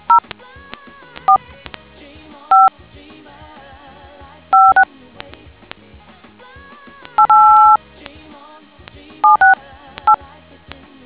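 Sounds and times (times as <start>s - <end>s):
DTMF tones: 4.6s - 4.8s, 7.1s - 7.8s, 9.2s - 10.2s.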